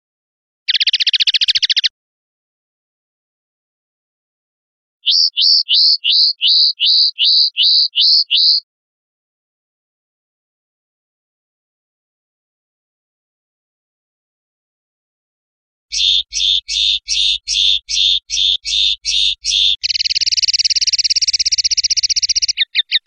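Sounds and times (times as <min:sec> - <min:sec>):
European goldfinch singing: 0:00.7 - 0:01.9, 0:05.0 - 0:08.6, 0:15.9 - 0:23.0.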